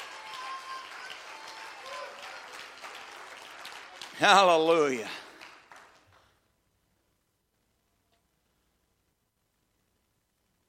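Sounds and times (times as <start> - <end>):
audience clapping hands: 0.0 - 6.6
speech: 4.2 - 5.2.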